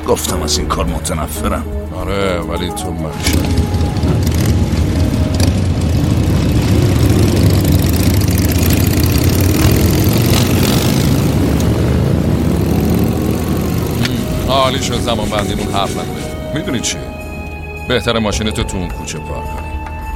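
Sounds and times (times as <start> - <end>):
speech: 0.1 - 3.9, 14.5 - 17.2, 17.9 - 19.7
Harley-Davidson motorcycle engine idling: 3.2 - 16.4.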